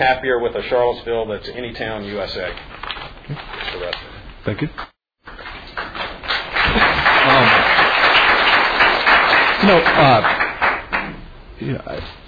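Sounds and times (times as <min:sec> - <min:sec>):
speech: 0:00.0 - 0:04.9, 0:09.6 - 0:10.4, 0:11.6 - 0:12.2
audience clapping at public meeting: 0:04.7 - 0:11.2.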